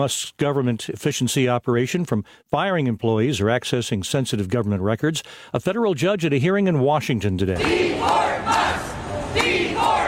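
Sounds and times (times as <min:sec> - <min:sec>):
speech: 0:00.0 - 0:08.8
protesters shouting at a rally in Tampa, Florida: 0:07.6 - 0:10.0.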